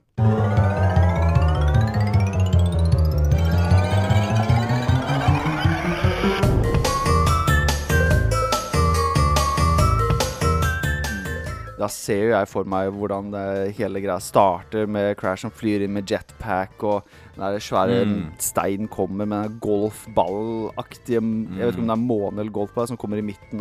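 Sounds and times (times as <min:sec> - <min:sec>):
video game main menu theme music: 0:00.0 - 0:11.7
speech: 0:12.0 - 0:23.6.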